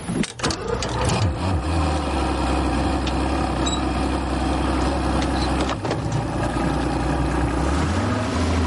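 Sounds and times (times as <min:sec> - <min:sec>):
boat engine starting and pulling away: 0:00.0 - 0:08.6
wash of noise: 0:06.3 - 0:08.6.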